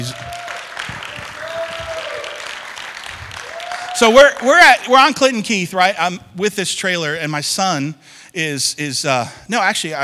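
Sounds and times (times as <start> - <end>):
crowd applauding: 0.0 - 5.4
speech: 4.0 - 10.0.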